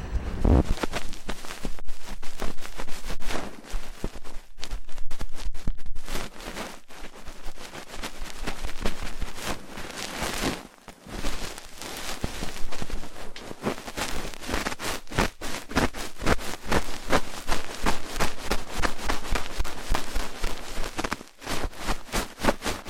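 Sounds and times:
faint low hum: 0.0s - 6.0s
rough ear cleaning scratching: 0.4s - 10.6s, 11.2s - 22.8s.

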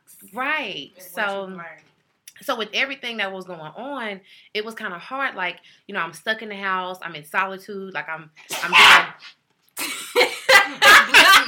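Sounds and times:
speech: 0.3s - 9.4s
person sneezing: 8.5s - 9.4s
laughter: 10.2s - 11.4s.

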